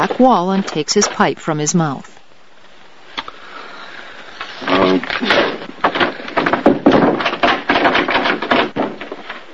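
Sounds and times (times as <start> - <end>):
speech: 0.0 - 2.1
shoulder and hip shoving a wooden door: 5.2 - 9.5.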